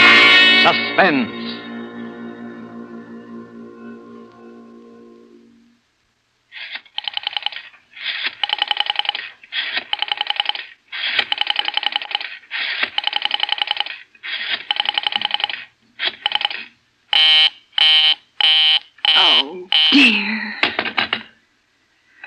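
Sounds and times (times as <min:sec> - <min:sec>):
telephone low sustained tone: 0:00.0 - 0:05.8
speech: 0:00.7 - 0:01.6
rotary telephone dial buzzing bursts: 0:06.7 - 0:20.0.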